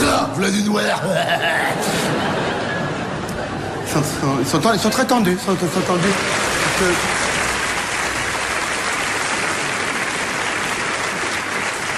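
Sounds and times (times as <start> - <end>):
speech: 0.3 - 2.4, 3.9 - 7.2
laughter: 0.8 - 7.2
audience applause: 5.4 - 11.9.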